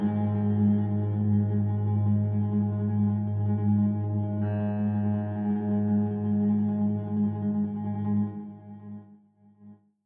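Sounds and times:
rattling piano drone: 0:00.2 - 0:08.7.

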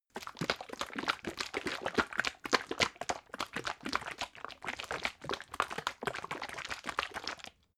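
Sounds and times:
syrup bottle shaken slowly: 0:00.1 - 0:07.6.

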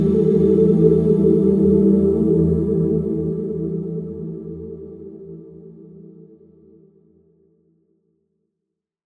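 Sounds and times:
evolving synth pad: 0:00.0 - 0:05.2.

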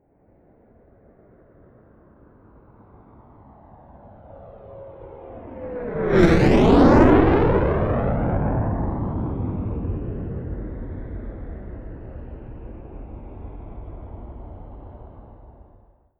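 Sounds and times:
military jet Fulcrum fast close flyby: 0:04.4 - 0:15.7.

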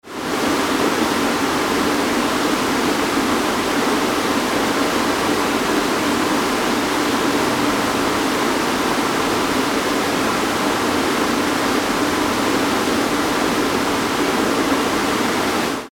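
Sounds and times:
waterfall: 0:00.0 - 0:15.9.

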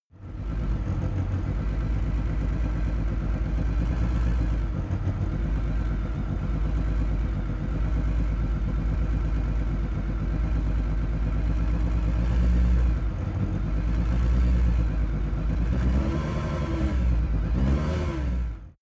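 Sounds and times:
Lancia S4 car engine idling: 0:00.2 - 0:16.1
Lancia S4 engine short revs: 0:11.6 - 0:18.8.

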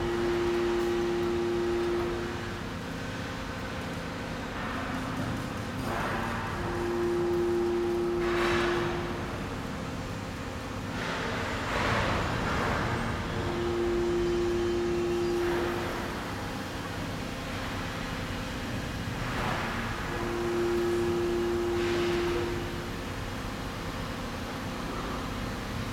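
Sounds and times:
shipyard ambience: 0:00.0 - 0:25.5.

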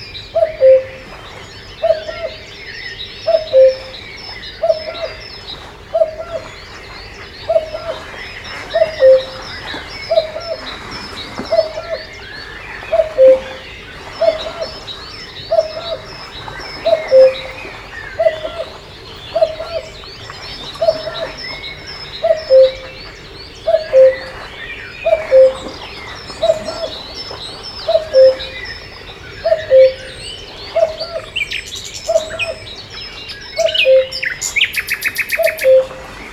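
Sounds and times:
cuckoo calling: 0:00.0 - 0:01.2, 0:01.8 - 0:02.5, 0:03.2 - 0:36.2
small songbirds chattering: 0:00.0 - 0:36.3.

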